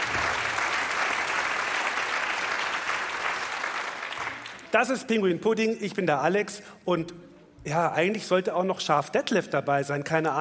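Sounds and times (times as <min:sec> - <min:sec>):
audience applause: 0:00.0 - 0:04.7
speech: 0:04.7 - 0:10.3.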